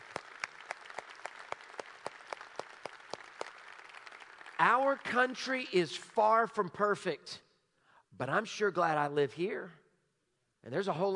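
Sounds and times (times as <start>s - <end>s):
crowd applauding: 0.0s - 5.8s
speech: 4.6s - 7.4s, 8.2s - 9.8s, 10.6s - 11.1s.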